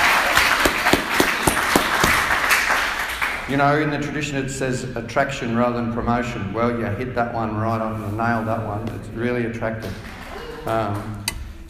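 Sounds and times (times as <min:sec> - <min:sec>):
audience clapping: 0:00.0 - 0:03.5
speech: 0:03.5 - 0:11.2.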